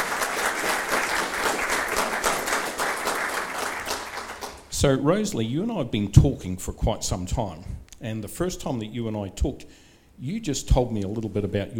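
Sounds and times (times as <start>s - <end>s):
audience clapping to welcome a guest speaker: 0.0s - 4.7s
speech: 4.8s - 11.7s.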